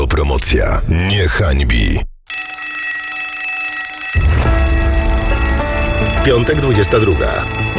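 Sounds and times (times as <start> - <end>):
speech: 0.2 - 2.1, 6.2 - 7.7
school bell ringing: 2.3 - 7.7.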